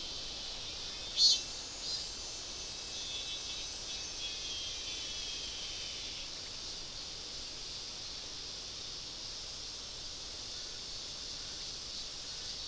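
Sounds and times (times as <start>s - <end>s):
insects droning in a shrill high-pitched chorus: 0.0s - 12.6s.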